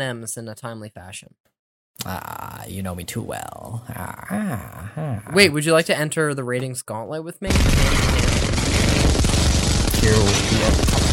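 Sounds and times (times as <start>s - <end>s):
speech: 0.0s - 8.9s, 10.0s - 11.1s
atomic bomb sound effect roaring: 7.5s - 11.1s.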